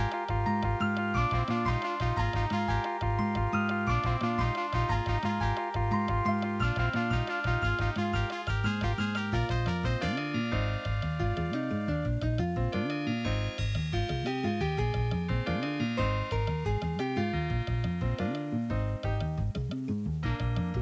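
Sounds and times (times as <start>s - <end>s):
Ensoniq Soundscape Opus soundcard test music: 0.0s - 20.8s.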